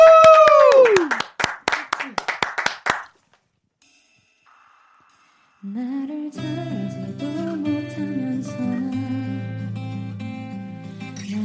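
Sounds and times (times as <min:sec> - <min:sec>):
excited voices cheering: 0:00.0 - 0:01.2
hand claps: 0:00.1 - 0:03.4.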